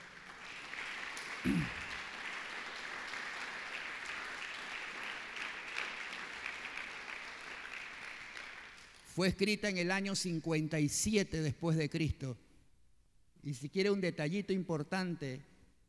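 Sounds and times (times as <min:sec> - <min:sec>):
audience applause: 0:00.0 - 0:09.0
speech: 0:01.4 - 0:01.8, 0:09.2 - 0:12.4, 0:13.4 - 0:15.5.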